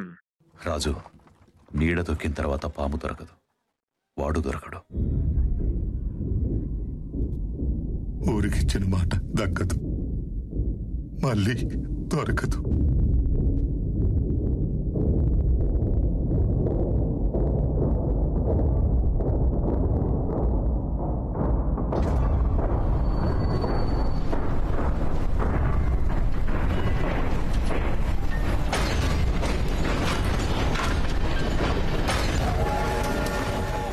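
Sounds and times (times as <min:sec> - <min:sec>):
speech: 0:00.0 - 0:03.4, 0:04.2 - 0:05.2, 0:08.2 - 0:09.9, 0:11.2 - 0:12.9
explosions: 0:05.0 - 0:33.9
train derailing: 0:22.2 - 0:33.9.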